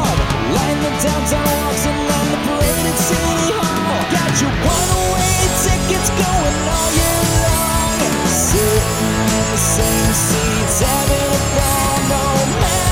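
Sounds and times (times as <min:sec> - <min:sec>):
electric karaoke harmony: 0:00.0 - 0:12.8.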